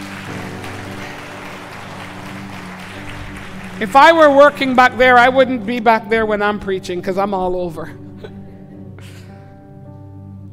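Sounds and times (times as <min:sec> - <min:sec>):
audience applause: 0:00.0 - 0:05.5
speech: 0:03.8 - 0:08.3.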